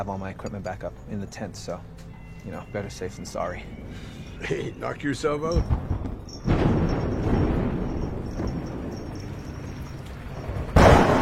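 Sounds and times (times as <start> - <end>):
speech: 0.0 - 5.9
sharp loud crack of thunder: 5.6 - 9.8, 10.4 - 11.2
deep rolling thunder rumble: 5.6 - 11.2.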